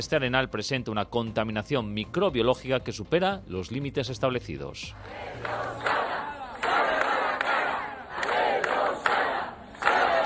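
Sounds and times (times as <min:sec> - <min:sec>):
speech: 0:00.0 - 0:06.0
crowd of protesters chanting: 0:05.0 - 0:10.2.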